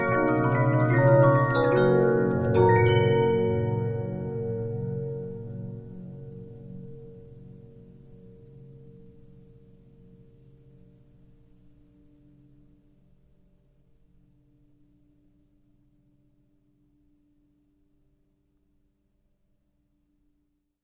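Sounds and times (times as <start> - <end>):
Regina 15-inch disc music box: 0.0 - 4.9.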